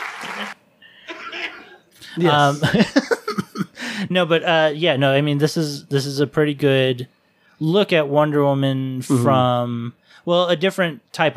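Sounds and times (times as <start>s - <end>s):
applause: 0.0s - 0.6s
laughter: 0.0s - 4.0s
speech: 2.2s - 3.2s, 4.0s - 11.3s.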